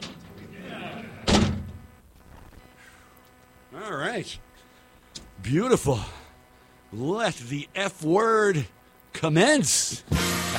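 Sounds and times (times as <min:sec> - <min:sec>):
heavy door slamming shut: 0:01.2 - 0:01.7
speech: 0:03.9 - 0:04.5, 0:05.4 - 0:06.2, 0:06.9 - 0:10.3.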